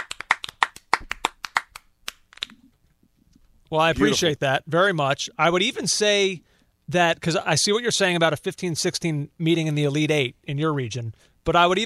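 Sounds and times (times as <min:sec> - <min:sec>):
hand clapping: 0:00.0 - 0:02.6
speech: 0:03.7 - 0:11.8.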